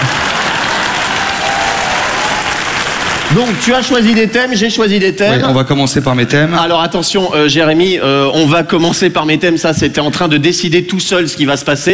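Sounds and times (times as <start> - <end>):
people applauding: 0.0 - 4.7
speech: 3.3 - 11.9.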